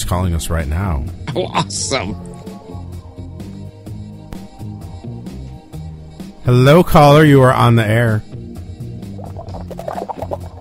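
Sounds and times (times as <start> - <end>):
speech: 0.1 - 2.4, 6.4 - 8.3
water gurgling through a smoking pipe: 9.2 - 10.5.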